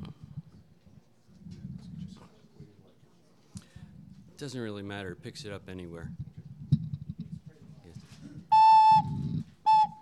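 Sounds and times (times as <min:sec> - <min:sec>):
speech: 0:04.4 - 0:06.2
ocarina note: 0:08.5 - 0:09.9.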